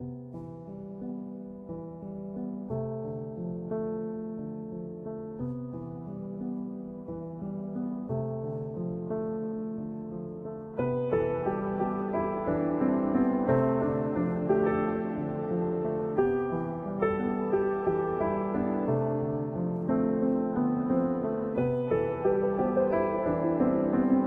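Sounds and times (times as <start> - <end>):
music: 0.0 - 24.2.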